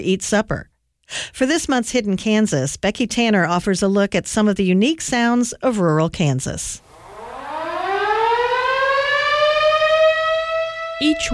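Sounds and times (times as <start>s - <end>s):
speech: 0.0s - 6.9s, 11.0s - 11.3s
town whistle siren: 6.8s - 11.3s.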